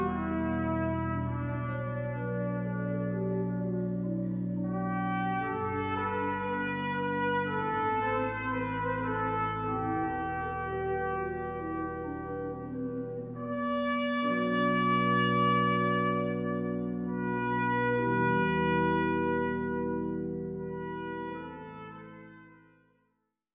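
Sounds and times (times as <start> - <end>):
organ playing a hymn: 0.0 - 22.4.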